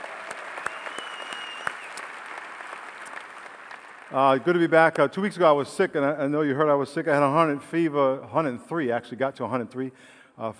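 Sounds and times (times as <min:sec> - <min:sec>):
audience applause: 0:00.0 - 0:04.5
speech: 0:04.1 - 0:10.5.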